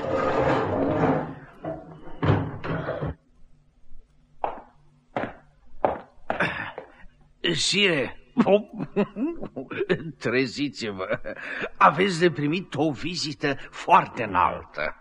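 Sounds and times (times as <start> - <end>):
prison cell door in the Bastille scraping open: 0.0 - 3.2
laughter: 6.3 - 6.8, 7.9 - 12.4
speech: 7.5 - 15.0.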